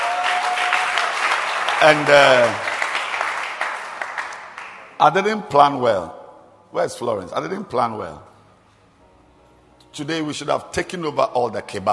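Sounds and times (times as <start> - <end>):
people clapping: 0.0 - 5.0
speech: 1.8 - 2.7, 5.0 - 8.3, 10.0 - 11.9.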